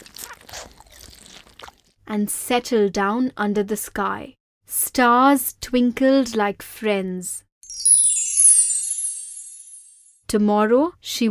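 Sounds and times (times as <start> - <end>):
eating food crunching: 0.0 - 2.0
speech: 2.1 - 7.4, 10.3 - 11.2.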